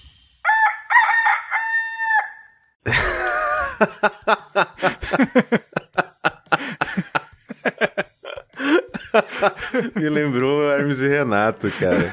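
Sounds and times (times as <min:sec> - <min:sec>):
human voice imitating a rooster crowing as a game jingle: 0:00.4 - 0:02.5
laughter: 0:02.8 - 0:12.1
speech: 0:03.8 - 0:04.4, 0:05.1 - 0:05.6, 0:09.9 - 0:12.1.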